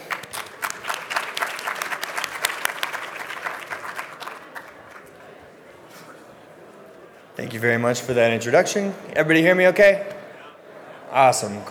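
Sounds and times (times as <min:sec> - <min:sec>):
audience applause welcoming a speaker at a cannabis business presentation: 0:00.0 - 0:06.1
speech: 0:07.4 - 0:10.1, 0:11.1 - 0:11.6.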